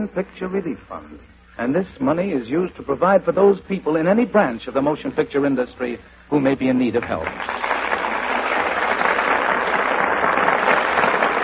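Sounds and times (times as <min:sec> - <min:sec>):
speech: 0:00.0 - 0:07.7
studio audience applause: 0:07.1 - 0:11.4.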